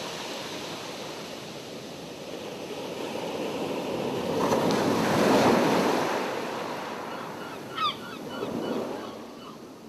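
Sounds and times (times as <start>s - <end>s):
ocean: 0.0s - 9.8s
seagulls: 7.1s - 9.6s.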